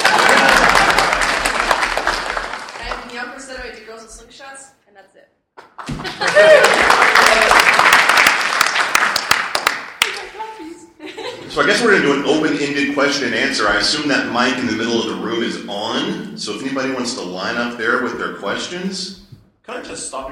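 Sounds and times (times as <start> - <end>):
audience laughing: 0.0 - 1.6, 5.8 - 6.8, 11.0 - 12.1
audience clapping: 0.0 - 3.8, 5.6 - 10.5
speech: 13.0 - 20.2.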